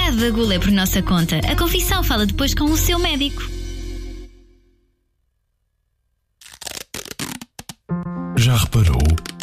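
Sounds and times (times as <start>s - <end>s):
speech: 0.1s - 3.6s
box closing: 8.8s - 9.4s.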